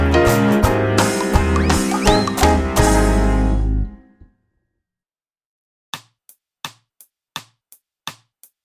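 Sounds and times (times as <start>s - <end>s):
open string section pattern: 0.1s - 4.1s.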